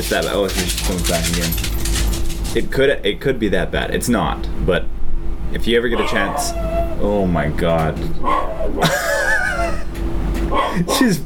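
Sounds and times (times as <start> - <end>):
speech: 0.0 - 9.0, 10.5 - 11.2
dog barking with ball in mouth: 6.0 - 6.8, 8.2 - 8.8, 10.5 - 10.8
laughter: 8.8 - 10.0.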